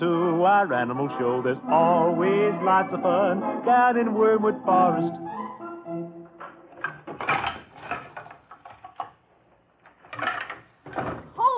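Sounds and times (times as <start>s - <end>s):
speech: 0.0s - 5.4s
piano being moved upstairs: 6.2s - 9.0s.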